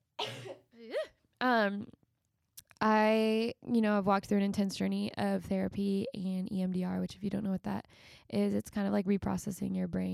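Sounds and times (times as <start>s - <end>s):
speaker coughing and clearing throat mid-talk: 0.2s - 1.1s
speech: 0.5s - 2.0s, 2.8s - 10.1s.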